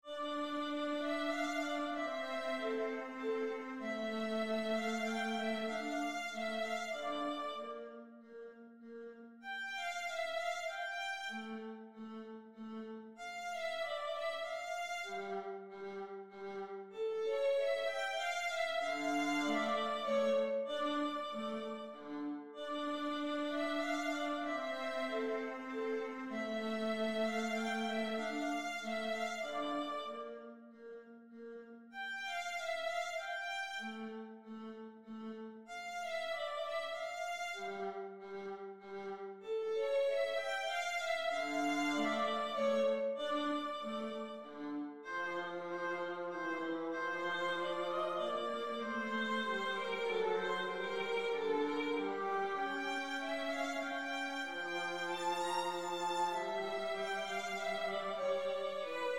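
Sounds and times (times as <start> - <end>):
minuet in D minor: 0.0 - 59.1.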